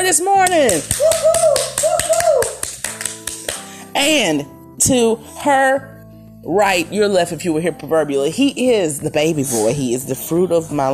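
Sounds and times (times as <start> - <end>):
speech: 0.0 - 1.7, 4.0 - 10.9
rhythmic clapping: 0.0 - 3.9.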